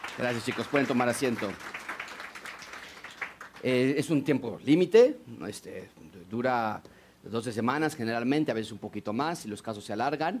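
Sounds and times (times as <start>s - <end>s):
audience applause: 0.0s - 3.6s
speech: 0.2s - 1.8s, 3.6s - 10.3s.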